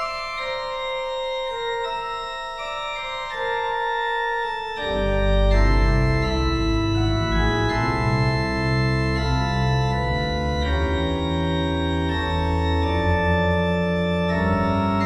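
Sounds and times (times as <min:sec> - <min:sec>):
computer-generated organ prelude with suspension appoggiatura: 0:00.0 - 0:15.0.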